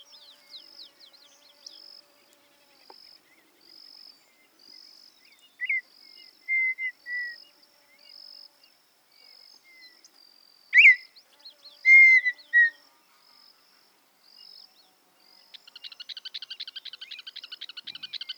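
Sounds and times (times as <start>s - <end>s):
campo miner chattering and whistling: 10.8s - 11.0s, 11.9s - 12.7s.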